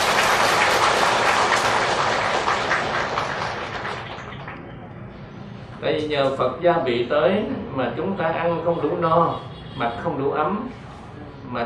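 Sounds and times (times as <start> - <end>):
crowd clapping: 0.0 - 4.7
speech: 5.9 - 10.9.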